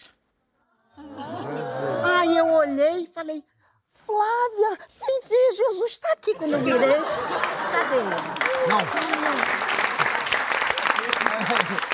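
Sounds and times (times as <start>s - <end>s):
laughter: 0.9s - 2.2s, 6.1s - 11.9s
speech: 2.8s - 9.6s, 11.5s - 11.9s
audience applause: 7.2s - 11.9s.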